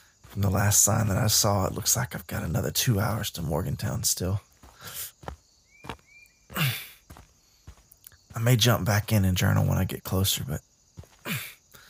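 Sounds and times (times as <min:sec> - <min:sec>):
footsteps of a person walking a long road toward Morgantown: 0:00.2 - 0:01.5, 0:04.1 - 0:09.9, 0:11.0 - 0:11.5
speech: 0:00.4 - 0:05.4, 0:08.4 - 0:10.7.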